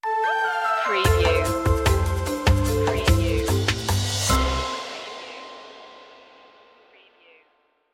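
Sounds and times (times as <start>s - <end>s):
music stinger: 1.1s - 6.6s.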